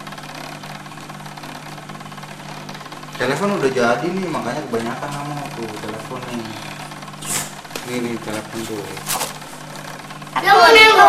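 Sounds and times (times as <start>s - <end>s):
toy sewing machine whirring: 0.0s - 11.0s
speech: 3.2s - 6.7s, 7.9s - 9.3s, 10.4s - 11.0s.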